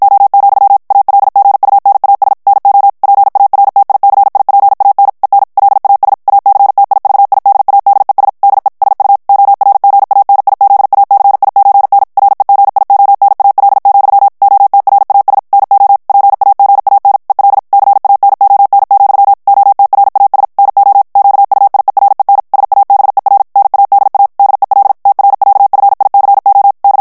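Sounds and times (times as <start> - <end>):
Morse code of Spanish plain text at 50 words per minute: 0.0 - 27.0.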